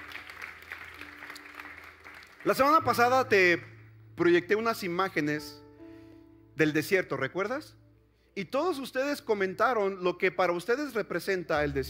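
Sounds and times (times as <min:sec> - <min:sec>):
church audience applause: 0:00.0 - 0:02.9
speech: 0:02.4 - 0:05.6, 0:06.6 - 0:07.8, 0:08.4 - 0:11.8.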